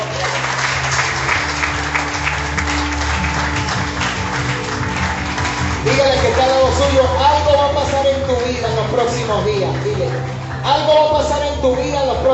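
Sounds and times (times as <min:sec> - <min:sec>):
audience applause: 0:00.0 - 0:11.7
speech: 0:09.3 - 0:12.3.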